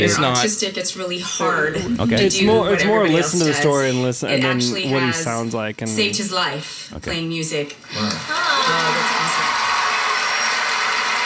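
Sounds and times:
speech: 0:00.0 - 0:09.0
crowd clapping: 0:08.0 - 0:11.2.

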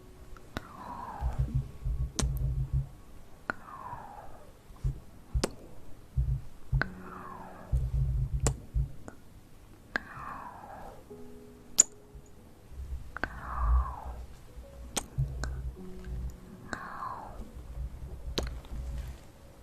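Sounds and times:
faint tonal hums: 0:00.0 - 0:09.3, 0:09.9 - 0:19.6
hand clicks and taps: 0:01.3 - 0:02.9, 0:04.8 - 0:07.0, 0:07.7 - 0:09.2, 0:14.9 - 0:15.7.

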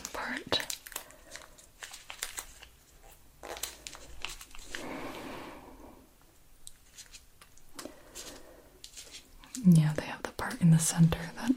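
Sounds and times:
crinkly rustling and tearing as an edge is peeled up: 0:00.0 - 0:05.1, 0:06.6 - 0:09.7
speech: 0:10.6 - 0:11.5.

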